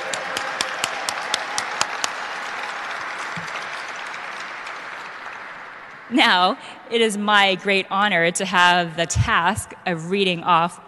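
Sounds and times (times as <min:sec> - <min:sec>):
audience applause: 0:00.0 - 0:06.1
speech: 0:06.1 - 0:10.8.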